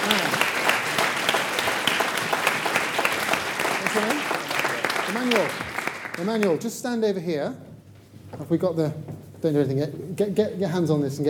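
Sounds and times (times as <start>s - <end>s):
audience applause: 0.0s - 6.6s
speech: 6.2s - 7.7s, 8.3s - 11.2s.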